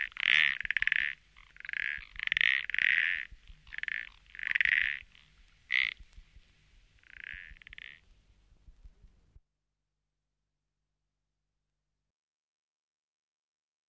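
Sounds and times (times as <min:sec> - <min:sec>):
frog calling with loud raspy croaks: 0:00.0 - 0:08.2.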